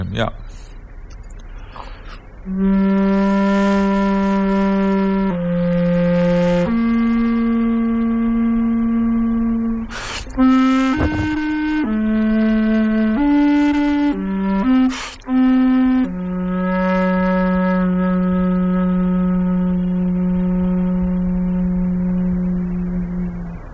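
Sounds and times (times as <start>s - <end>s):
bass recorder melody: 2.5s - 23.6s.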